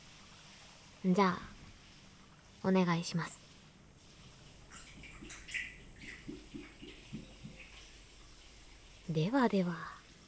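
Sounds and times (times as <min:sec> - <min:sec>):
faint watery splashes at an open-air bath: 0:00.0 - 0:10.2
speech: 0:01.0 - 0:01.5, 0:02.6 - 0:03.4, 0:09.1 - 0:10.0
cold sake poured from a bottle into a small ochoko cup: 0:04.2 - 0:09.2.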